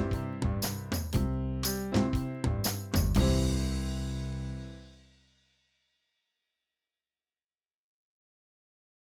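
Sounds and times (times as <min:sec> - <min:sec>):
12-bar blues in C: 0:00.0 - 0:04.8.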